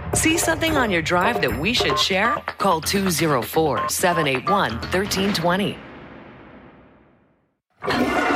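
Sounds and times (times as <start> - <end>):
speech: 0.2 - 5.9
raw sewage pouring into Winnipeg rivers: 7.8 - 8.3.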